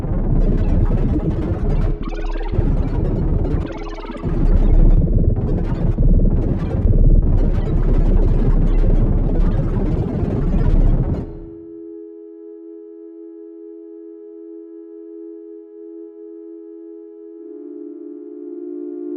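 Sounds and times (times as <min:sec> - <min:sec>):
robotic string sound stream: 0:00.2 - 0:11.5.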